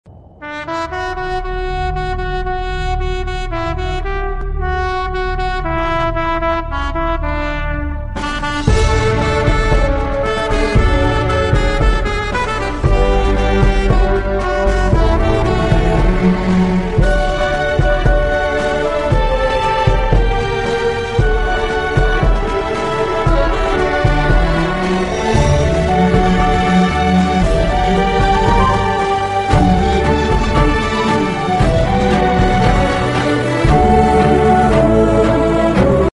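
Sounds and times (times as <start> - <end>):
instrumental music: 0.4 - 36.1.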